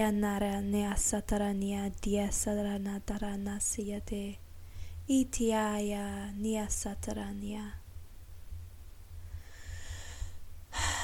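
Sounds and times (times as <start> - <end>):
speech: 0.0 - 4.4, 5.1 - 7.8
deep breath drawn in: 4.6 - 5.0, 9.2 - 11.0.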